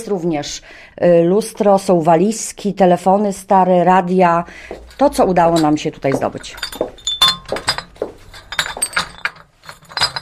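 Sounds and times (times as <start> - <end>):
speech: 0.0 - 7.7
old swing-top glass bottles clinking: 4.7 - 10.1.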